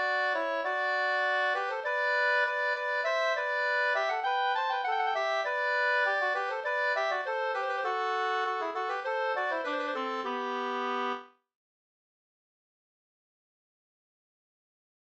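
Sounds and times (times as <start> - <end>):
two-part folk dance tune in G major: 0.0 - 11.3.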